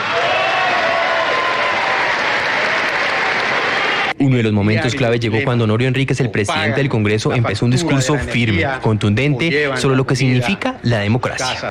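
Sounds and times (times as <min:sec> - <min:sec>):
applause from a large crowd in the assembly hall: 0:00.0 - 0:04.2
faint cheering: 0:00.0 - 0:04.2
speech: 0:04.2 - 0:11.6.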